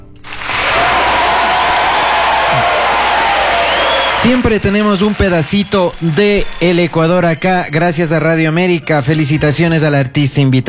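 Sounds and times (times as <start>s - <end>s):
audience applauding: 0.2s - 7.7s
speech: 4.2s - 10.6s.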